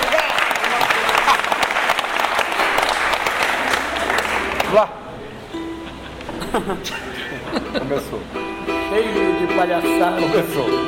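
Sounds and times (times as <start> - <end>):
applause: 0.0 - 4.9
speech: 4.7 - 5.0, 6.6 - 10.8
laughter: 5.6 - 8.3.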